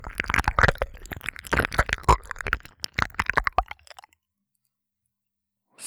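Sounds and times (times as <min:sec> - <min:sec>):
ASMR ear licking sounds: 0:00.0 - 0:04.1.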